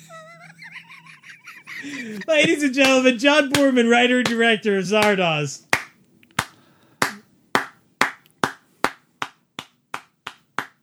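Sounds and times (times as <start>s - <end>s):
laughter: 0.0s - 3.7s
speech: 1.8s - 5.7s
applause sound effect: 5.0s - 10.8s.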